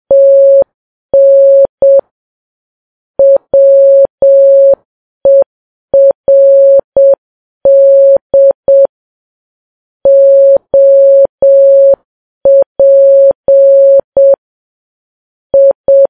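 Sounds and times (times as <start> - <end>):
morse code beeps: 0.1 - 0.6, 1.2 - 2.0, 3.2 - 8.9, 10.1 - 14.4, 15.6 - 16.0.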